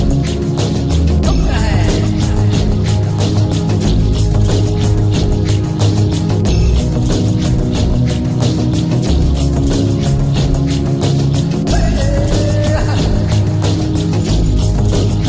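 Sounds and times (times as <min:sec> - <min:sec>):
Indian spiritual music: 0:00.0 - 0:15.2.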